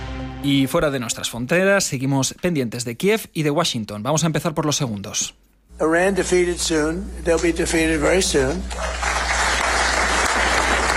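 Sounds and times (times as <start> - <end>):
speech: 0.4 - 9.2
audience applauding Donald Trump: 8.5 - 10.9.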